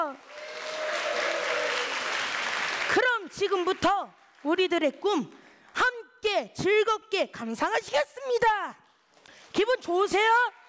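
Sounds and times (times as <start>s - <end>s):
audience applause: 0.2s - 3.3s
speech: 3.4s - 5.4s, 6.3s - 8.8s, 9.6s - 10.6s.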